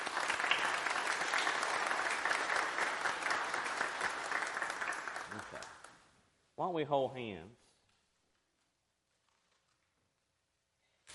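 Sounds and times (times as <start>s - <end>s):
applause: 0.0s - 6.1s
speech: 6.6s - 7.6s.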